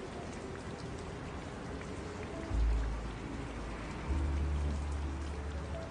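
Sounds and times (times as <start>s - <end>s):
ambient rainy city jazz music: 0.1s - 5.9s.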